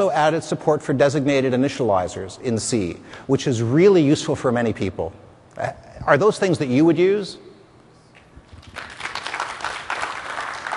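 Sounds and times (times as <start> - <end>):
speech: 0.0 - 7.5
few lonely claps: 8.1 - 10.7.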